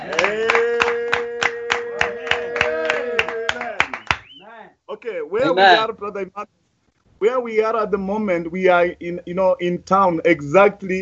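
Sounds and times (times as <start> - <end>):
audience clapping to welcome a preacher: 0.0 - 4.4
speech: 5.3 - 6.6, 7.2 - 10.9.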